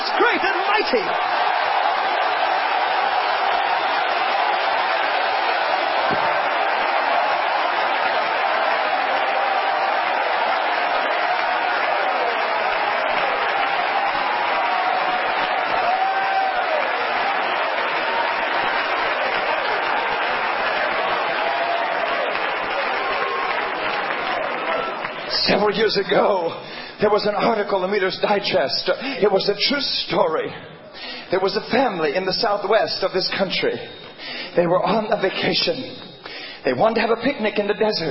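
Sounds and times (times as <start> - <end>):
audience clapping: 0.0 - 25.6
speech: 0.9 - 1.4, 25.7 - 30.7, 31.3 - 34.0, 34.6 - 38.0.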